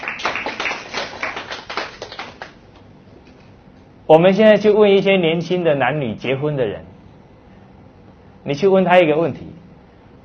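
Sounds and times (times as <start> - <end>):
audience applause: 0.0 - 2.6
speech: 4.1 - 6.9, 8.5 - 9.6.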